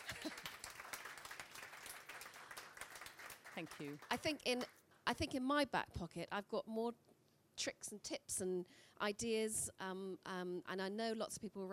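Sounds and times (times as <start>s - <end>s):
audience applause: 0.0s - 4.2s
speech: 3.6s - 11.7s.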